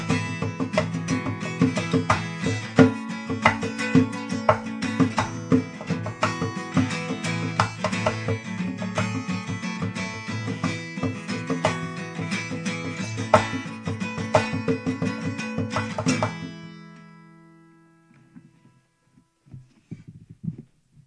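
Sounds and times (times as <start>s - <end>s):
cajon: 0.0s - 16.7s.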